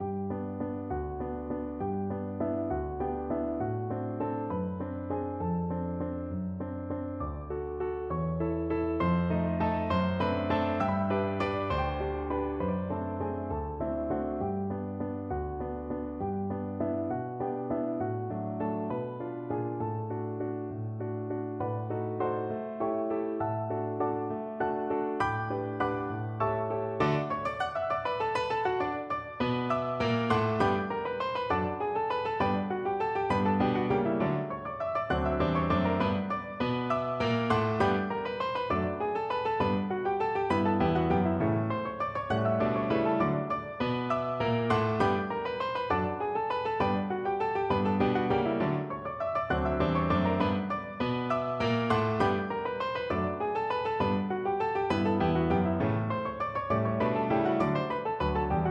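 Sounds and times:
piano duet waltz: 0:00.0 - 0:58.6.

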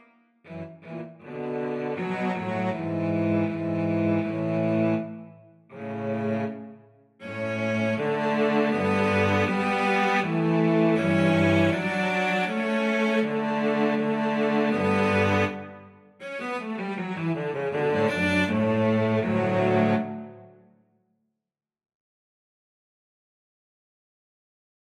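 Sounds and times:
cello piece: 0:00.0 - 0:20.6.

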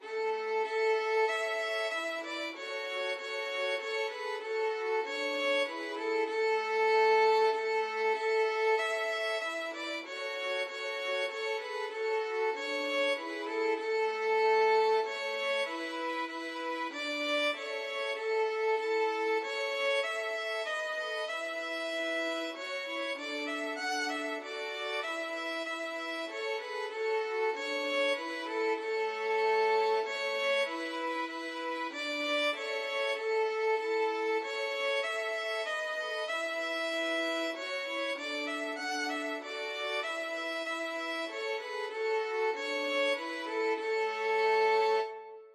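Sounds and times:
violin trio playing a Christmas hymn: 0:00.0 - 0:45.5.

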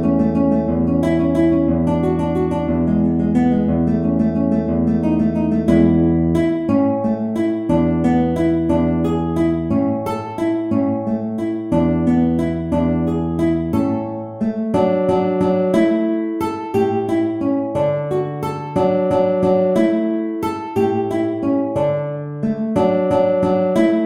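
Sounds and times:
guitar waltz in A: 0:00.0 - 0:24.0.

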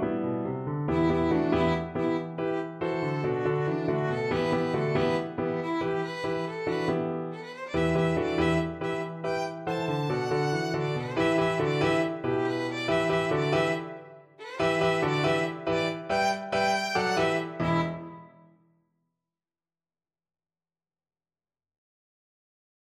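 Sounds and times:
rock violin: 0:00.9 - 0:18.1.

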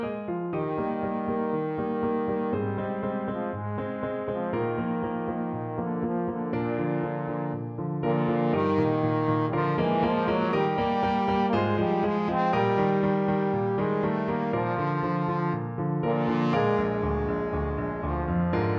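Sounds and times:
trombone playing romance: 0:00.6 - 0:18.7.

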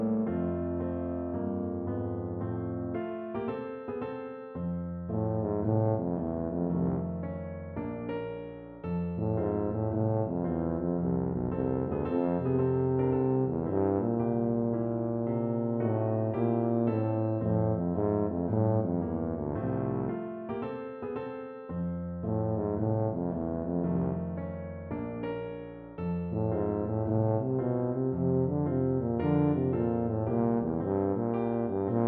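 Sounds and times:
tuba: 0:00.0 - 0:03.5, 0:04.6 - 0:20.8, 0:21.7 - 0:32.0.

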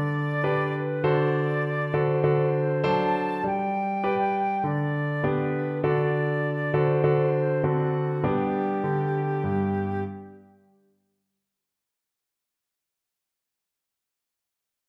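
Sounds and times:
flute: 0:00.0 - 0:10.6.

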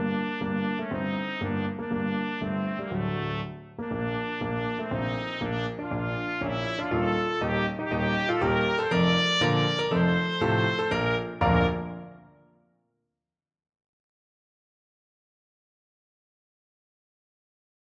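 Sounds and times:
trumpet: 0:00.0 - 0:12.4.

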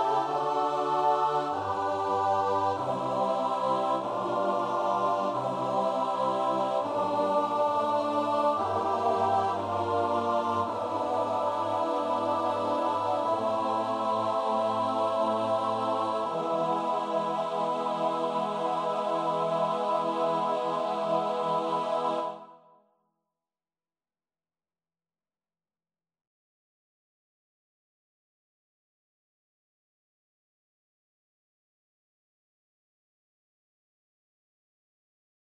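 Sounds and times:
choir singing: 0:00.0 - 0:22.6.

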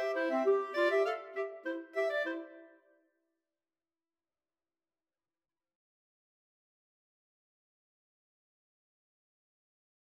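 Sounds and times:
clarinet duet: 0:00.0 - 0:02.8.

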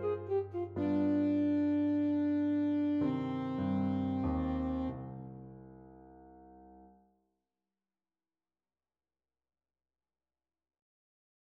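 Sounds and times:
alto saxophone playing a waltz: 0:00.0 - 0:05.1.

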